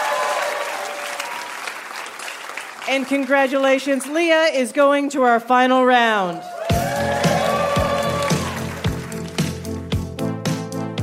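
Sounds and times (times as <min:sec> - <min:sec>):
audience applauding game show contestants: 0:00.0 - 0:04.2, 0:06.3 - 0:09.9
speech: 0:02.9 - 0:06.5.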